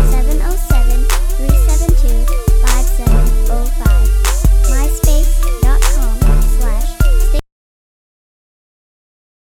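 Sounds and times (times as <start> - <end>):
crunk hip hop music: 0.0 - 7.4.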